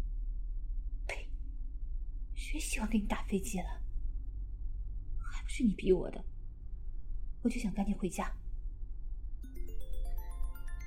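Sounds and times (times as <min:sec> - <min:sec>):
low rumble: 0:00.0 - 0:10.1
speech: 0:02.5 - 0:03.8, 0:05.6 - 0:06.3, 0:07.4 - 0:08.4
mobile phone ringing with electronic melody: 0:09.4 - 0:10.8.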